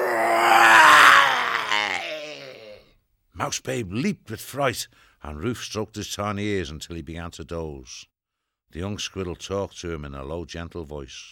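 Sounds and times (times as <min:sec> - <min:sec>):
human voice imitating a loud animal roar: 0:00.0 - 0:03.0
speech: 0:03.4 - 0:08.1, 0:08.7 - 0:11.2.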